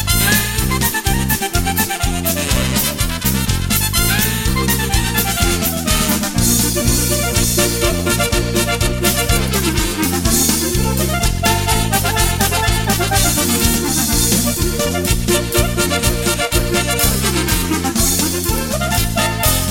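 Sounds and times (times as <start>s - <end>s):
clarinet polka: 0.0s - 19.6s.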